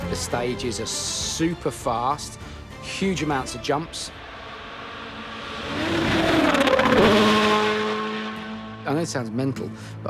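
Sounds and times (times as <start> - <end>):
speech: 0.1 - 4.2, 8.9 - 10.0
rally car engine revving hard on a fast stage at Rally Finland: 3.4 - 9.7.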